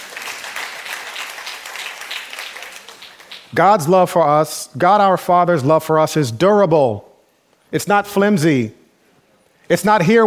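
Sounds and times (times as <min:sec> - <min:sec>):
audience applause: 0:00.0 - 0:03.6
speech: 0:03.5 - 0:07.1, 0:07.7 - 0:08.8, 0:09.7 - 0:10.2.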